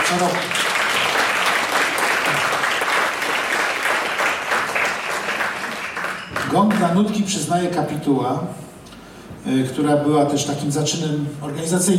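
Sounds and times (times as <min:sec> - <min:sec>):
audience applause: 0:00.0 - 0:07.0
speech: 0:00.1 - 0:00.6, 0:06.6 - 0:08.6, 0:09.4 - 0:11.9.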